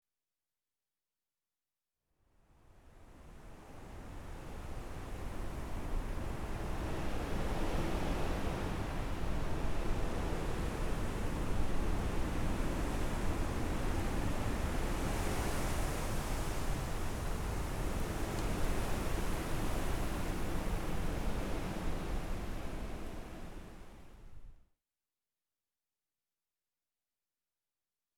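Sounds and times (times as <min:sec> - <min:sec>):
wind: 0:02.7 - 0:24.6.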